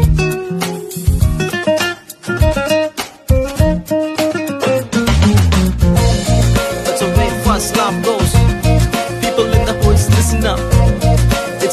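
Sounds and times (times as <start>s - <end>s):
Tamil background music ringtone: 0.1s - 3.6s, 5.1s - 11.7s.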